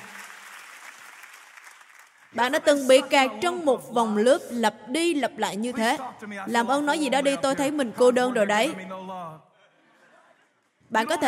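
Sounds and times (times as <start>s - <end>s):
audience applause: 0.0s - 2.4s
speech: 2.3s - 9.5s, 10.9s - 11.2s.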